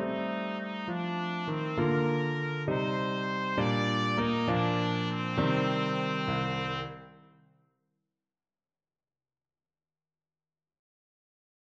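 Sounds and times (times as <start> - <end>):
trumpet melody: 0.0 - 7.3.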